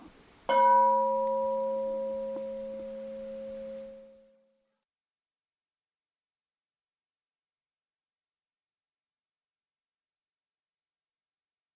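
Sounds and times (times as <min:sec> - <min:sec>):
bell ringing: 0:00.5 - 0:04.3.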